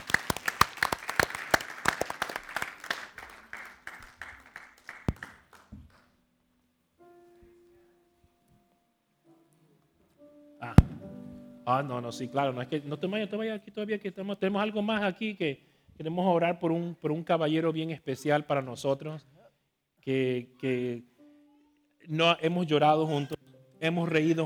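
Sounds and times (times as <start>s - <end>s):
audience applause: 0.0s - 6.0s
speech: 11.7s - 19.3s, 20.0s - 21.1s, 22.1s - 24.4s.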